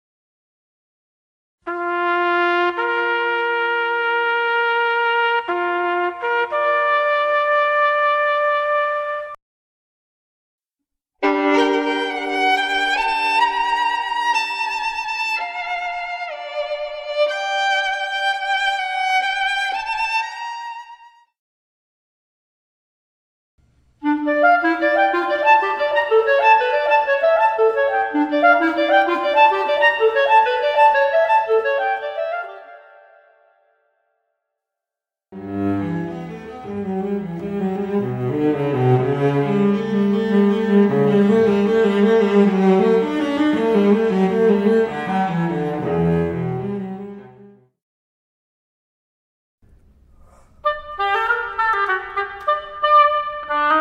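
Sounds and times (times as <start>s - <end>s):
wind instruments: 1.7s - 9.4s, 11.2s - 21.0s, 24.0s - 33.4s, 35.4s - 47.4s, 50.6s - 53.7s
string instruments: 11.2s - 21.2s, 24.0s - 32.8s, 35.4s - 47.6s.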